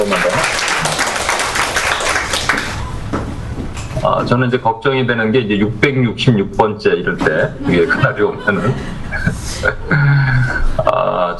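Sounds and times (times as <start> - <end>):
speech: 0.0 - 0.6, 4.0 - 11.3
audience applause: 0.0 - 2.8
laughter: 7.5 - 11.2.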